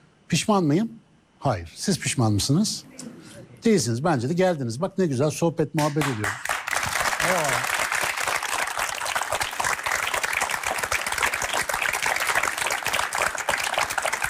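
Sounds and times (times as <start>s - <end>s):
speech: 0.3s - 6.5s
audience applause: 5.8s - 14.2s.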